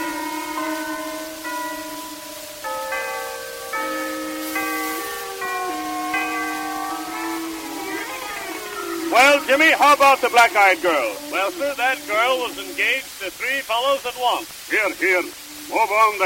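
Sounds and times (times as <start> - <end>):
church chimes playing a slow melody: 0.0 - 12.6
hiss: 0.0 - 16.2
speech: 9.2 - 16.2.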